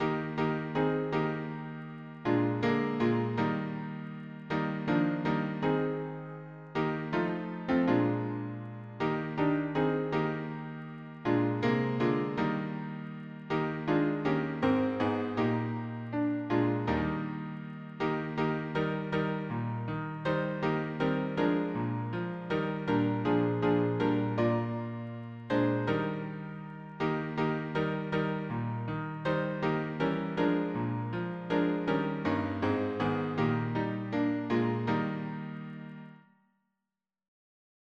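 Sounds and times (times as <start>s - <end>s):
piano harmony: 0.0s - 36.3s.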